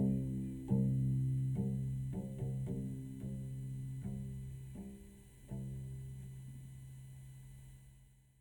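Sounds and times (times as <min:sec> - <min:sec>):
cello playing C note: 0:00.0 - 0:06.4.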